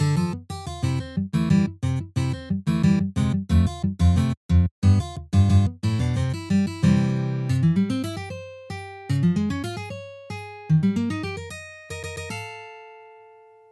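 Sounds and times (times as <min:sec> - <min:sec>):
guitar playing video game music, complex arrangement: 0:00.0 - 0:13.5.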